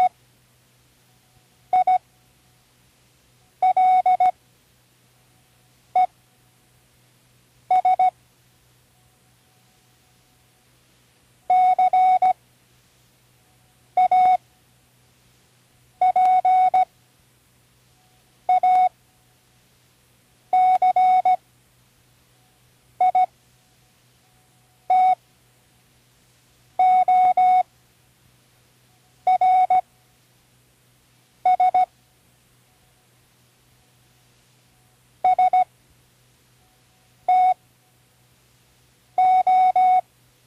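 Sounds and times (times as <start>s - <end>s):
Morse code spelling words: 1.7s - 2.0s, 3.6s - 4.3s, 7.7s - 8.1s, 11.5s - 12.4s, 14.0s - 14.4s, 16.0s - 16.9s, 18.5s - 18.9s, 20.5s - 21.4s, 23.0s - 23.3s, 24.3s - 25.2s, 26.8s - 27.6s, 29.3s - 29.8s, 31.5s - 31.9s, 35.2s - 35.7s, 36.6s - 37.6s, 39.2s - 40.0s.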